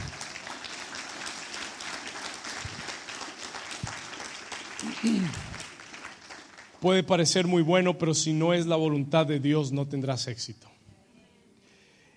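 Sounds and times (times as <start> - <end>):
audience applauding loudly: 0.0 - 7.5
speech: 5.0 - 5.5, 6.8 - 10.7.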